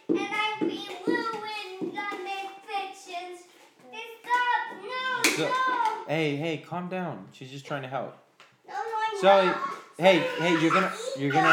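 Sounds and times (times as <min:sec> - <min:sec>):
child slapping puzzle pieces: 0:00.0 - 0:06.1
speech: 0:05.4 - 0:08.2, 0:09.2 - 0:11.5.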